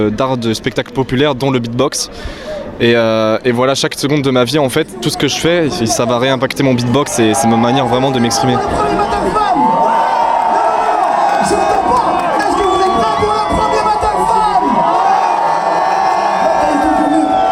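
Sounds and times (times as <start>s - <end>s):
speech: 0.0s - 9.7s
large crowd cheering and shouting: 6.8s - 17.5s.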